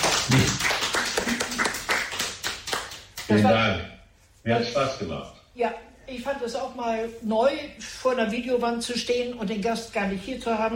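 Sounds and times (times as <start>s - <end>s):
audience applause: 0.0s - 3.0s
speech: 3.3s - 10.7s.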